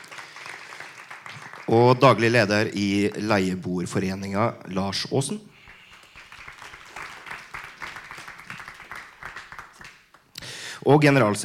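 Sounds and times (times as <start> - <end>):
audience applause: 0.0 - 3.3, 5.6 - 10.2
speech: 1.7 - 5.5, 10.9 - 11.4.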